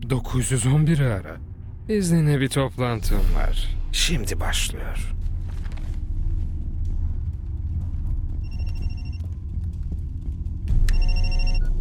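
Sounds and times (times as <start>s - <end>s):
steady low hum: 0.0s - 11.8s
speech: 0.1s - 5.2s
telephone ringing with electronic trilling: 10.9s - 11.7s.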